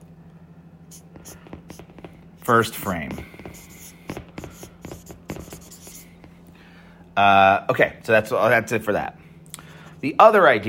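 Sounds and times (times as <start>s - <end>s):
faint low hum: 0.0s - 10.6s
pen writing notes by hand on paper: 0.9s - 6.3s
speech: 2.5s - 3.3s, 7.2s - 9.2s, 10.0s - 10.6s.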